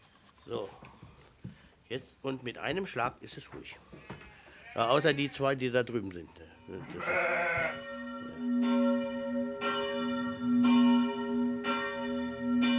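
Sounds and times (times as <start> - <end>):
speech: 0.5 - 1.0, 1.9 - 4.2, 4.8 - 7.9
abbey church bells ringing for midday prayer: 7.0 - 12.7.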